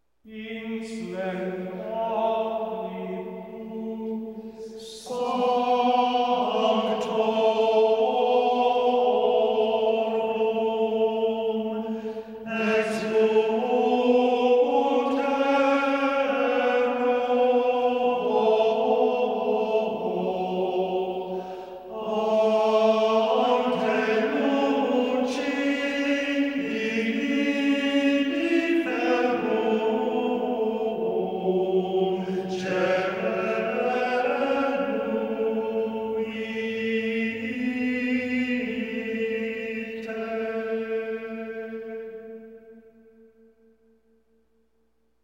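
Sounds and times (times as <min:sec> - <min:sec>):
Gregorian chant at Midnight Mass communion: 0:00.2 - 0:43.3.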